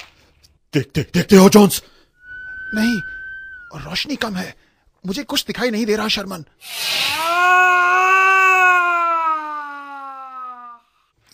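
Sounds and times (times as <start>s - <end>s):
speech: 0.7s - 2.0s, 2.7s - 3.1s, 3.7s - 7.7s
scream: 2.2s - 4.0s, 6.6s - 11.0s.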